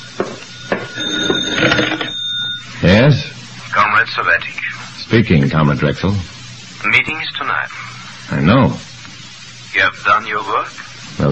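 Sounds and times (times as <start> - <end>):
telephone ringing with a metallic bell tone: 0.0 - 2.6
speech: 4.2 - 8.8, 9.8 - 11.3.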